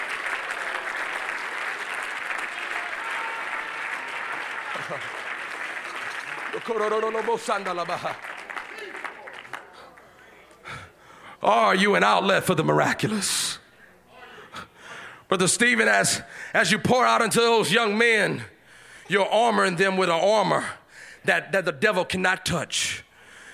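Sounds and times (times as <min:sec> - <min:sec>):
audience clapping hands: 0:00.0 - 0:10.6
speech: 0:04.9 - 0:05.2, 0:06.6 - 0:08.3, 0:11.4 - 0:13.6, 0:15.3 - 0:18.5, 0:19.1 - 0:23.0.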